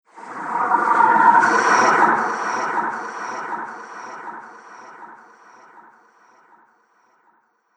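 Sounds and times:
unholy terror transition sound: 0:00.2 - 0:06.2.

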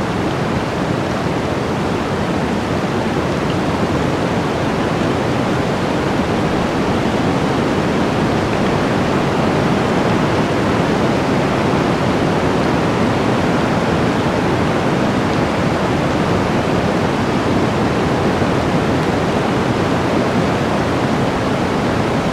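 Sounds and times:
blizzard wind in a forest: 0:00.0 - 0:22.3.

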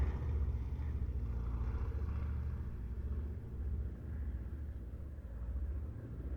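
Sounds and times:
C195 airplane squadron passing: 0:00.0 - 0:06.2.

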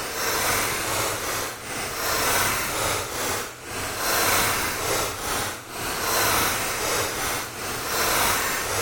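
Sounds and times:
fluctuating drone: 0:00.1 - 0:08.7.

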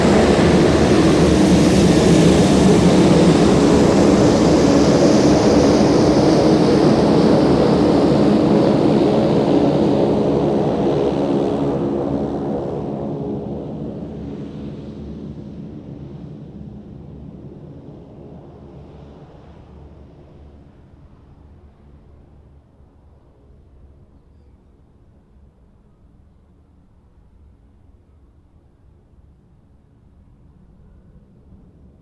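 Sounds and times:
2007 King Air 350 aircraft taxiing: 0:00.0 - 0:24.1.

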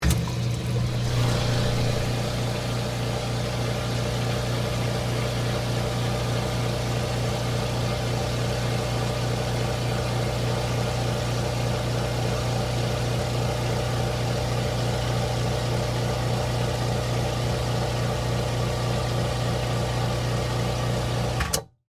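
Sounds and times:
soda fountain compressor switching on, running and off: 0:00.0 - 0:21.4.

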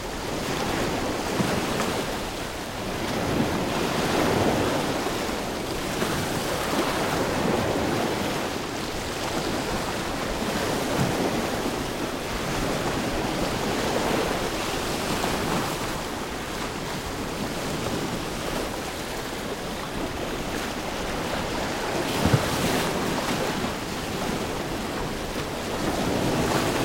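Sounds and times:
ocean waves around a beached wreck: 0:00.0 - 0:26.8.

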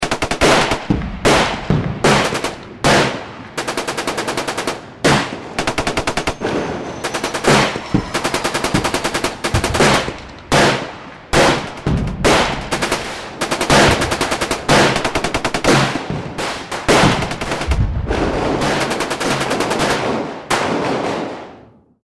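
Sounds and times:
intense modern urban warfare battle ambience: 0:00.0 - 0:21.6.

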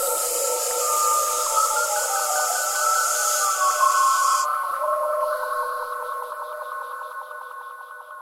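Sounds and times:
snakes hissing: 0:00.0 - 0:04.5
eerie jungle ambience: 0:00.0 - 0:08.2.

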